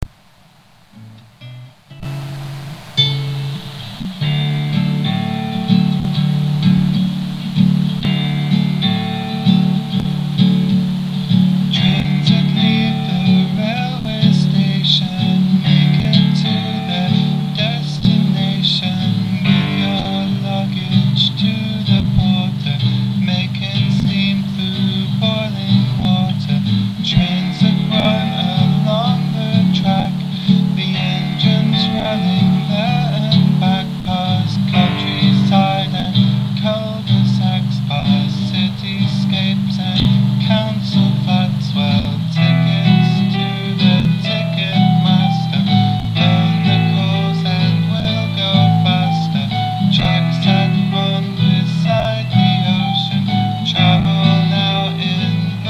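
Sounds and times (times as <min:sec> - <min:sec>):
train song: 0:01.4 - 0:55.6.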